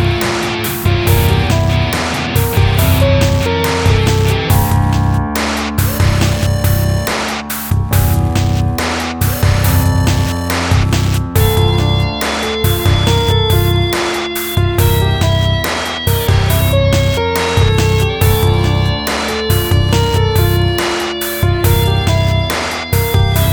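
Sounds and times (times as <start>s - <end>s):
piano: 0.0s - 23.5s.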